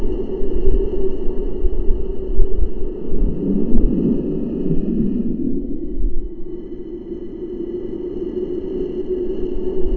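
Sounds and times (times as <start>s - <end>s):
underwater ambience: 0.0s - 9.9s.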